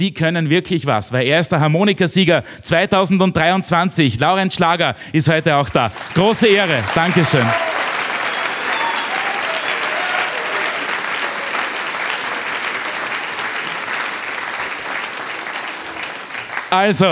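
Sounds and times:
speech: 0.0s - 7.8s, 16.7s - 17.1s
audience applause: 5.8s - 17.1s.

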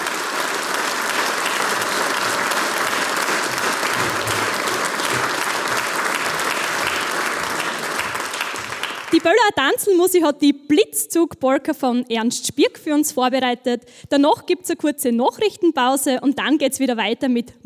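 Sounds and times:
large audience applause: 0.0s - 9.3s
speech: 9.2s - 17.6s.

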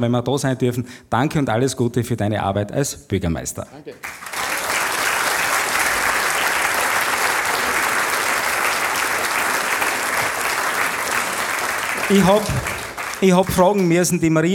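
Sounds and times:
speech: 0.0s - 4.4s, 12.1s - 14.5s
audience applause: 4.0s - 14.2s.

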